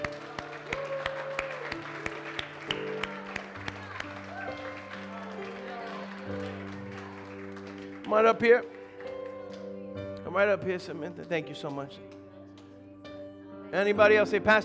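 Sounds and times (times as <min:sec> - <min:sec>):
audience applause: 0:00.0 - 0:09.7
speech: 0:08.1 - 0:08.8, 0:10.4 - 0:12.1, 0:13.7 - 0:14.6.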